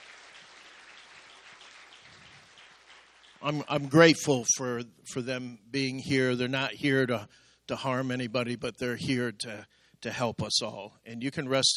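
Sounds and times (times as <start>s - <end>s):
audience clapping hands: 0.0s - 4.5s
speech: 3.4s - 11.7s.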